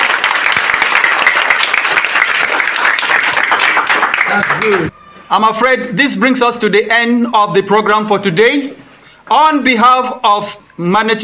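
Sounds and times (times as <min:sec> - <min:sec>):
round of applause: 0:00.0 - 0:04.9
speech: 0:04.4 - 0:11.2.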